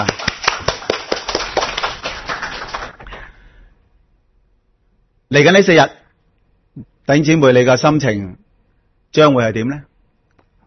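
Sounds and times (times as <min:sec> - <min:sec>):
crowd applauding: 0:00.0 - 0:03.4
speech: 0:05.3 - 0:06.0, 0:06.8 - 0:08.4, 0:09.1 - 0:09.9.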